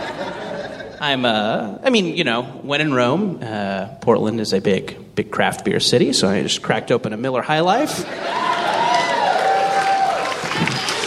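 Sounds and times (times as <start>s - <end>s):
laughter: 0.0s - 1.2s, 7.9s - 9.1s, 10.4s - 11.0s
speech: 1.0s - 8.5s
audience cheering: 8.0s - 11.0s.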